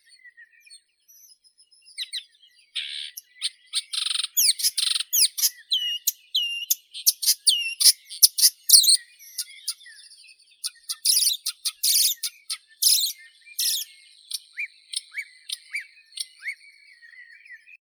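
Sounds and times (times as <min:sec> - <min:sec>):
marsh warbler Acrocephalus palustris singing: 0:00.0 - 0:17.8.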